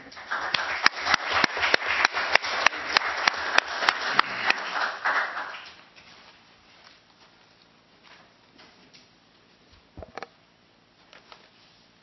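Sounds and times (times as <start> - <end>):
applause in council chamber: 0.0 - 6.3.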